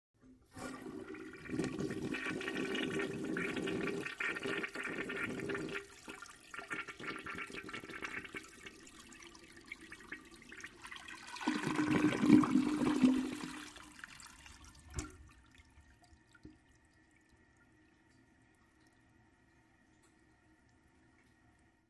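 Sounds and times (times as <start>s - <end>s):
public restroom toilet short flush: 0.3s - 21.8s.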